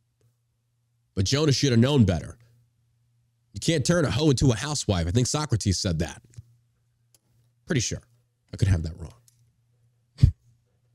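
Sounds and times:
speech: 1.2s - 2.4s, 3.6s - 6.4s, 7.7s - 9.2s
sniffling into a microphone: 10.2s - 10.5s.

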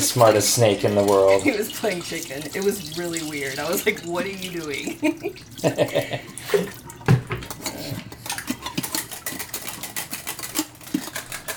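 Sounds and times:
water running from a tap: 0.0s - 11.5s
speech: 0.1s - 6.8s
laughter: 4.8s - 6.8s
cutlery and dishes clinking together: 5.8s - 11.5s.

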